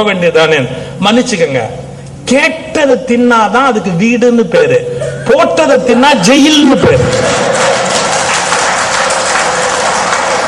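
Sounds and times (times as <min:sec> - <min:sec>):
speech: 0:00.0 - 0:07.4
audience men clapping hands: 0:07.0 - 0:10.4.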